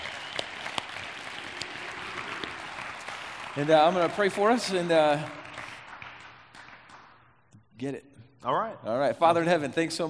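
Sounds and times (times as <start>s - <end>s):
audience applause welcoming a speaker to the stage: 0.0s - 7.1s
speech: 3.6s - 5.4s, 7.8s - 10.0s.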